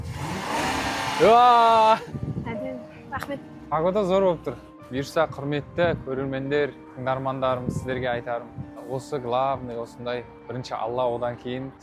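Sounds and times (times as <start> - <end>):
car engine revving as the driver presses the gas: 0.0 - 2.0
speech: 1.2 - 2.2, 3.2 - 11.8.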